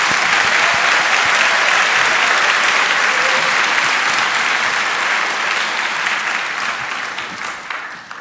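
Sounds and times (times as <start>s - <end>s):
audience applause: 0.0s - 8.1s.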